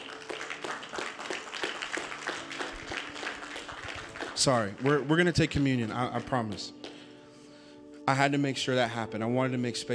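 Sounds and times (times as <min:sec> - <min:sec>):
audience clapping: 0:00.0 - 0:07.0
speech: 0:04.4 - 0:06.8, 0:08.1 - 0:09.9.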